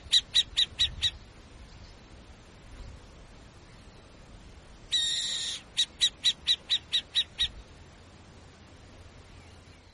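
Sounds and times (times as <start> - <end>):
burrowing owl screeching and chattering: 0.0 - 1.2, 4.9 - 7.6.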